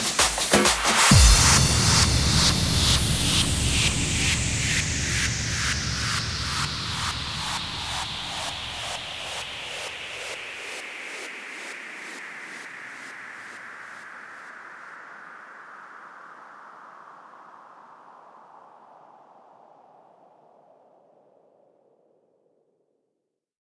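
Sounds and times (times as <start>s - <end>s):
guaracha remix music: 0.0s - 9.0s.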